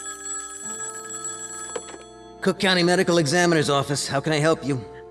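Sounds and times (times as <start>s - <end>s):
telephone ringing: 0.0s - 3.5s
speech: 2.4s - 5.0s.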